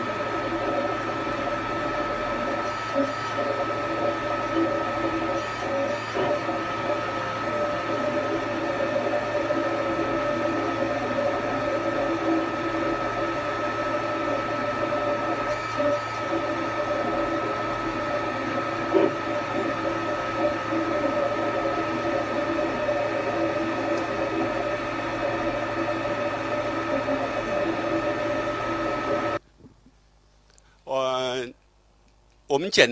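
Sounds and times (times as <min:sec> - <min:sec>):
3D printer printing a small crocodile: 0:00.0 - 0:29.4
speech: 0:32.6 - 0:32.9.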